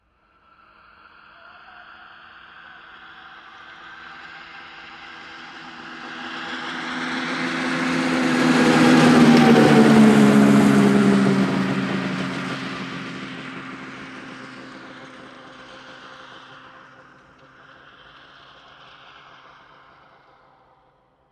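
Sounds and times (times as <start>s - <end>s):
snowmobile passing by: 3.7s - 18.9s.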